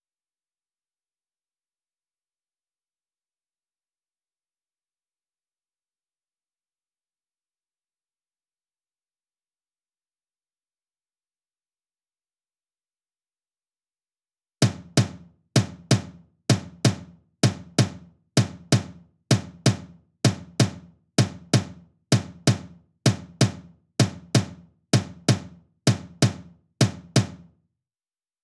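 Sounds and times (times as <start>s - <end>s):
tom drum: 14.6s - 27.5s.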